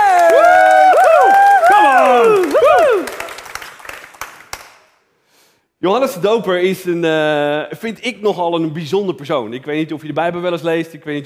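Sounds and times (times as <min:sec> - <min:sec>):
applause: 0:00.0 - 0:05.0
speech: 0:05.8 - 0:11.2.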